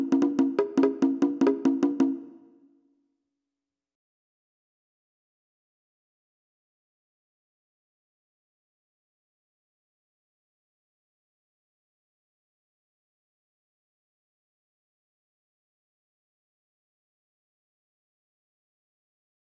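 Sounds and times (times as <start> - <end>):
percussion: 0.0 - 2.6.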